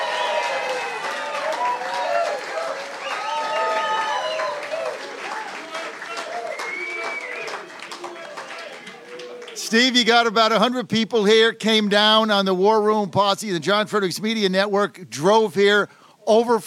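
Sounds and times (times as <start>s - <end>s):
audience applause at a War Room event in Dana Point California: 0.0s - 10.4s
speech: 9.7s - 16.6s.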